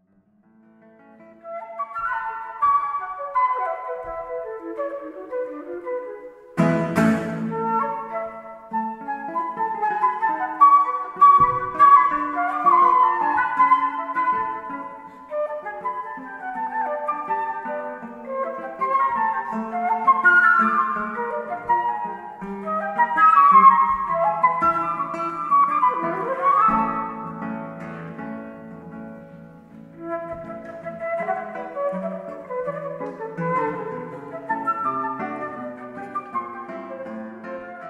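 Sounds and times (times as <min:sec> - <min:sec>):
guitar: 0:00.0 - 0:37.8
flute: 0:01.2 - 0:37.8.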